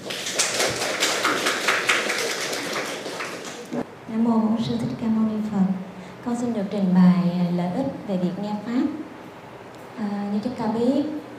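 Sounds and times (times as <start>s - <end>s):
applause: 0.0s - 3.8s
speech: 4.2s - 9.0s, 10.0s - 11.3s.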